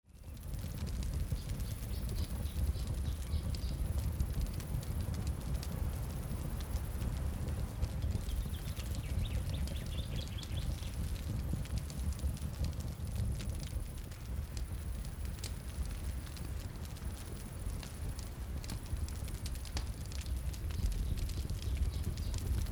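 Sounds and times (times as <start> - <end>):
ambience: 0.1 - 22.7.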